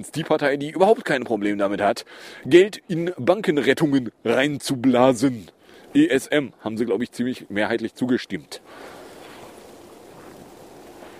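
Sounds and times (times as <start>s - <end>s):
speech: 0.0s - 9.0s
rustling leaves: 8.6s - 11.1s.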